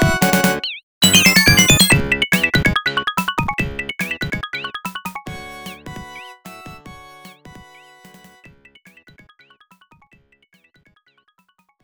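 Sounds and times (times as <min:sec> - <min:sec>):
bonus stage game music: 0:00.0 - 0:09.0.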